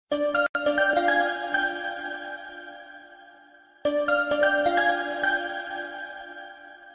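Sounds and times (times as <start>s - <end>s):
ringtone: 0.1s - 6.9s.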